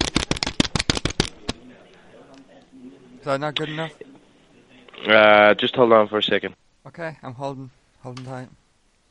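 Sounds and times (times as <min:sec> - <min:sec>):
English cash banknotes rustled and flicked: 0:00.0 - 0:01.6
speech: 0:03.2 - 0:04.1, 0:05.0 - 0:08.6.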